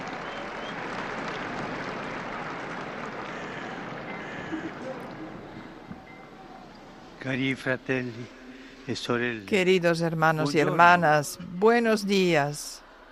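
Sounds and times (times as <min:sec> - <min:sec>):
crowd ovation: 0:00.0 - 0:07.1
speech: 0:07.2 - 0:12.8.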